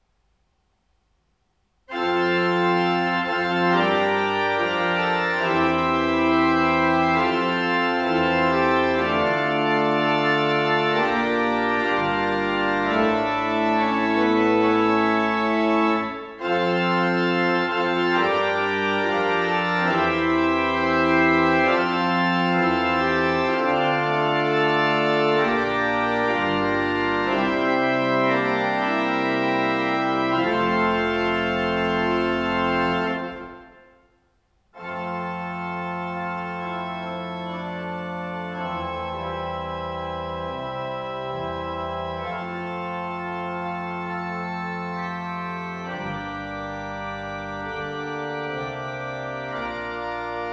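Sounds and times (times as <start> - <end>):
fanfare on a small organ: 1.9 - 34.1, 34.8 - 50.5.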